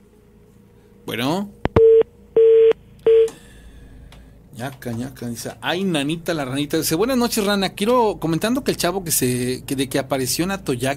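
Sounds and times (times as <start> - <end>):
speech: 1.1 - 1.6, 4.6 - 10.9
telephone line tone beeps: 1.8 - 3.4.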